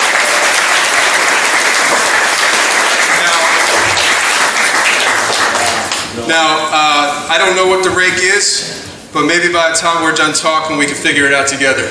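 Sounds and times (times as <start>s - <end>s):
live audience round of applause: 0.0s - 6.2s
speech: 6.3s - 11.8s.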